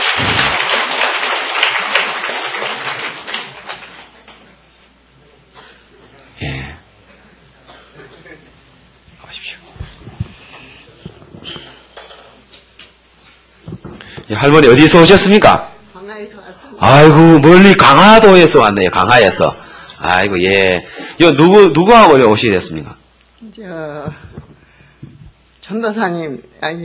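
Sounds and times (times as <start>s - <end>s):
audience applause: 0.0s - 4.5s
speech: 14.4s - 15.7s, 16.3s - 23.0s, 25.7s - 26.8s.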